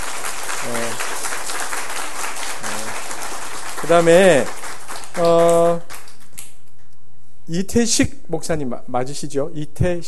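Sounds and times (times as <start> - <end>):
welcoming applause from audience: 0.0 - 6.2
speech: 3.9 - 4.6, 5.2 - 5.8, 7.5 - 10.0.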